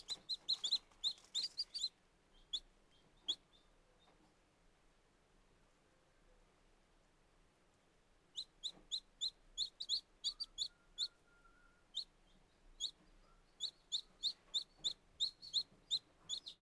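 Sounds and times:
very young chicken chicks peeping: 0.0 - 4.3, 8.3 - 16.6.

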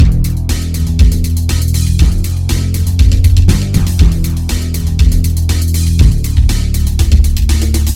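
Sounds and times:
pop rock loop: 0.0 - 7.9.

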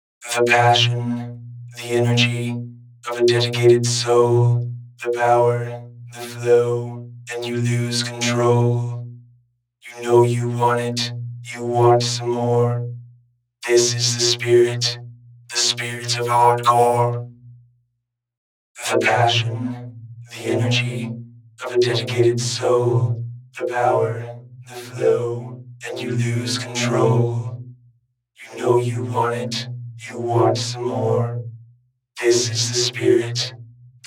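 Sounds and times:
hardcore vocoder voice: 0.2 - 1.2, 1.8 - 9.0, 9.9 - 12.8, 13.6 - 17.2, 18.8 - 19.7, 20.3 - 27.5, 28.4 - 31.4, 32.2 - 33.5.

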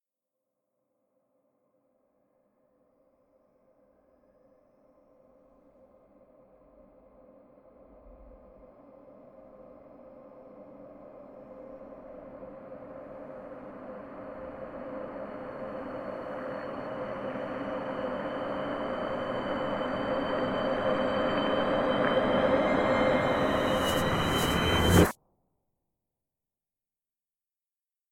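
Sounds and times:
horror music build-up: 15.7 - 25.2.

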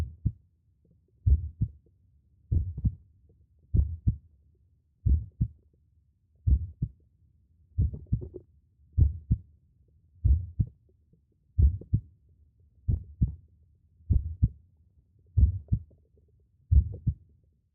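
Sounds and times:
heartbeat: 0.0 - 0.4, 1.2 - 1.8, 2.5 - 3.0, 3.7 - 4.2, 5.0 - 5.6, 6.5 - 7.0, 7.8 - 8.4, 9.0 - 9.4, 10.2 - 10.8, 11.6 - 12.0, 12.9 - 13.4, 14.1 - 14.6, 15.4 - 15.9, 16.7 - 17.2.

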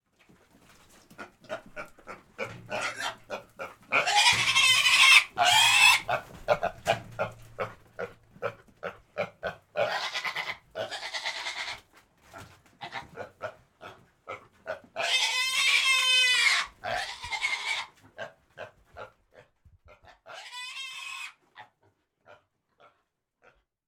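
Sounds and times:
pig squealing: 1.8 - 8.1, 9.2 - 11.8, 14.7 - 17.9, 20.3 - 21.4.

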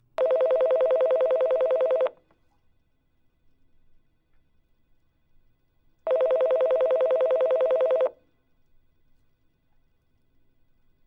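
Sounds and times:
office telephone ringing: 0.2 - 2.2, 6.1 - 8.2.

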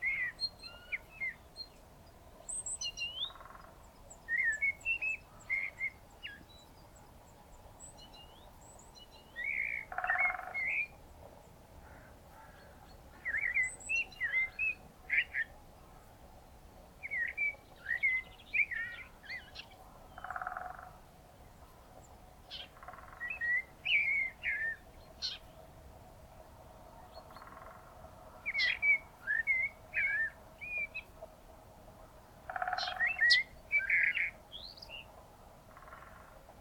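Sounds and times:
birds on a spring morning: 0.0 - 31.4, 32.0 - 36.5
woodpecker on a spring morning: 9.6 - 10.9, 20.2 - 21.0, 22.6 - 23.6, 32.5 - 34.3, 35.7 - 36.4.

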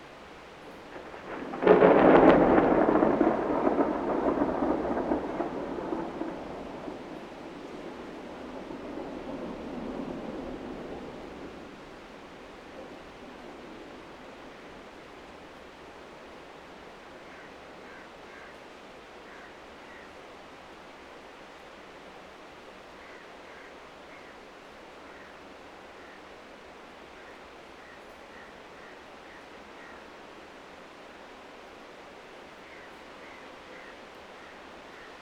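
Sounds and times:
thunder in Johor Bahru: 0.9 - 11.9.

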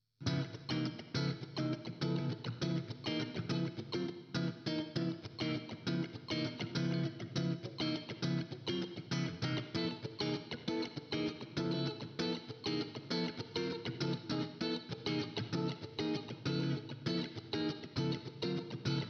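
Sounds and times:
funk guitar in C: 0.2 - 19.0.

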